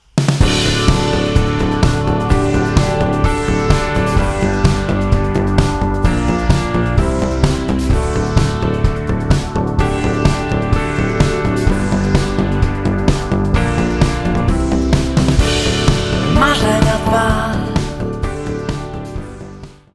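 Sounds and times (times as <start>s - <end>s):
galactic disco music: 0.4s - 19.4s.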